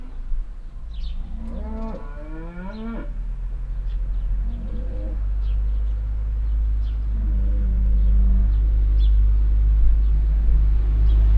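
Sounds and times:
small birds chirping: 0.0s - 2.0s, 2.6s - 11.3s
low traffic rumble: 0.0s - 11.3s
cow mooing: 1.2s - 3.2s, 4.4s - 5.3s, 7.0s - 8.8s.

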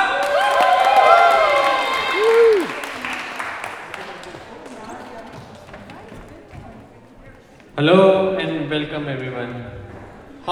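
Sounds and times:
high whoops and shouts: 0.0s - 2.9s
comedy-night audience clapping: 0.0s - 7.1s
speech: 7.8s - 9.7s.

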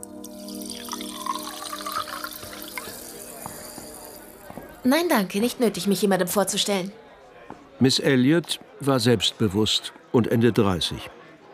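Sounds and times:
water poured for flowers in vase: 0.0s - 4.5s
speech: 4.8s - 7.0s, 7.8s - 11.2s.

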